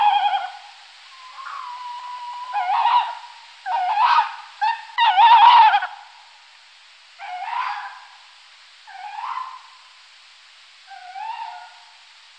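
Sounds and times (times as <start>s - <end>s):
tawny owl calls: 0.0s - 6.2s, 7.2s - 10.0s, 10.8s - 12.1s.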